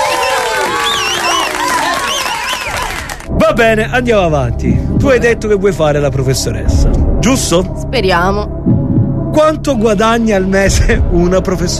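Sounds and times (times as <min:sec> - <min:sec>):
cheering whoops and shouted voices: 0:00.0 - 0:03.2
audience applause: 0:00.0 - 0:03.3
speech: 0:03.5 - 0:08.8, 0:09.4 - 0:11.7.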